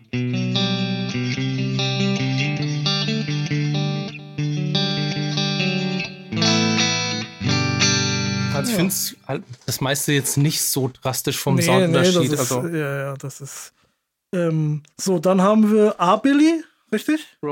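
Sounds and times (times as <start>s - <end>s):
modeled Firebird electric guitar, neck mini-humbucker tone with distortion and chorus: 0.0s - 9.2s
speech: 0.1s - 0.4s, 8.6s - 17.5s.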